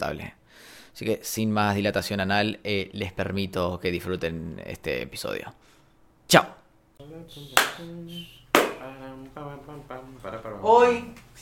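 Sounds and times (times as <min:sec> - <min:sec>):
speech: 0:00.0 - 0:05.7, 0:06.3 - 0:11.4
hand claps: 0:07.5 - 0:07.9, 0:08.5 - 0:08.8.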